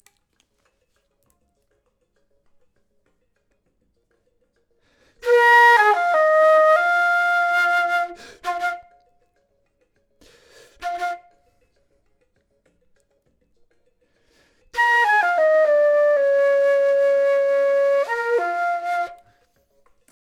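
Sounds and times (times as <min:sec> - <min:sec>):
flute: 0:05.2 - 0:09.2, 0:10.6 - 0:11.7, 0:14.7 - 0:19.6.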